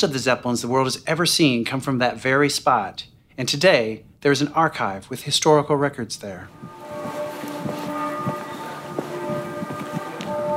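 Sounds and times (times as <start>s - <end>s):
speech: 0.0s - 7.2s
church bells ringing: 6.5s - 10.5s.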